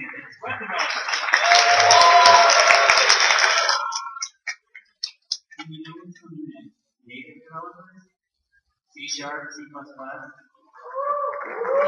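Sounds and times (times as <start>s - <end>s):
applause from a gathering of developers: 0.0s - 4.6s, 10.8s - 11.8s
speech: 9.1s - 10.4s.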